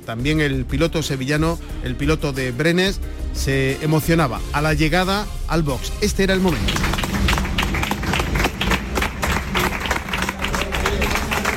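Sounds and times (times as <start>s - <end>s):
speech: 0.1s - 7.0s
motorcycle racing team applauding rider at the box: 6.5s - 11.5s.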